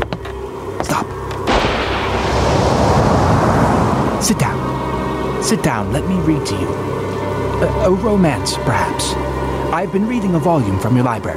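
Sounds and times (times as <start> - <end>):
thunder rumbling in a storm: 1.5 - 7.0
speech: 4.3 - 4.5, 5.5 - 11.3.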